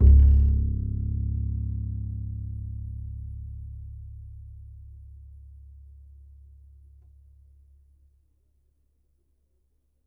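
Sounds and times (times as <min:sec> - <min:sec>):
upright acoustic bass in E: 0:00.0 - 0:07.0.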